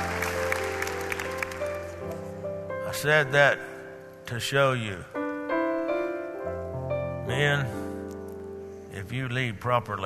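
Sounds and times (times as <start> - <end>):
audience applause: 0.0 - 2.3
sustained keyboard chords: 0.0 - 9.6
speech: 3.0 - 3.7, 4.3 - 5.2, 7.3 - 7.8, 9.0 - 10.0.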